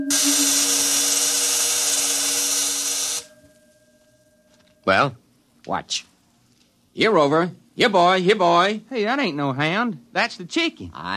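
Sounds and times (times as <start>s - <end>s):
energy field vibrating and discharging: 0.0s - 3.3s
speech: 4.9s - 6.1s, 7.0s - 11.1s.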